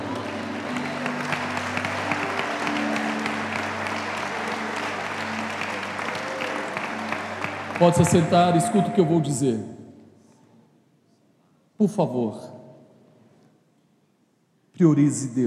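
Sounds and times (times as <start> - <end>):
audience applauding: 0.0 - 9.5
speech: 7.8 - 9.8, 11.8 - 12.6, 14.8 - 15.4.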